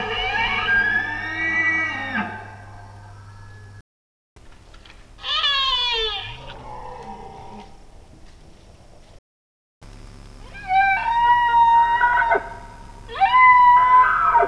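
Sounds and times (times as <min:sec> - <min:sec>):
male Bactrian deer calling and roaring: 0:00.0 - 0:03.6, 0:05.2 - 0:07.9, 0:10.4 - 0:14.4.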